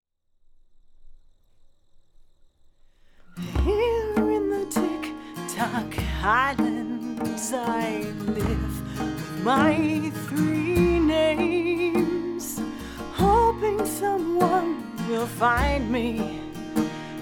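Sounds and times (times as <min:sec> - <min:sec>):
djembe drumming: 0:03.6 - 0:10.0, 0:10.6 - 0:14.8, 0:15.5 - 0:16.8.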